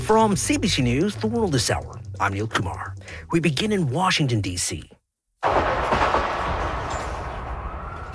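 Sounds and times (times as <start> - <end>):
speech: 0.1 - 5.7
burst of gunfire: 5.4 - 8.0.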